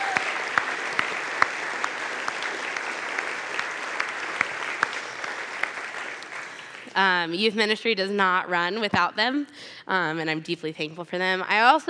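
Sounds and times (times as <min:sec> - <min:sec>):
audience applause: 0:00.0 - 0:07.0
speech: 0:07.0 - 0:11.8.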